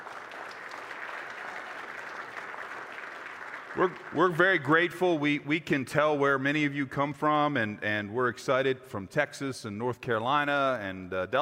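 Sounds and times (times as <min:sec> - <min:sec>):
church audience applause: 0:00.0 - 0:04.9
speech: 0:03.8 - 0:11.4.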